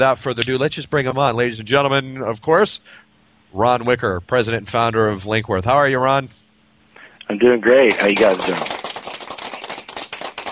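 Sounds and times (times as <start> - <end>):
speech: 0.0 - 6.4, 7.3 - 8.8
applause: 7.9 - 10.4.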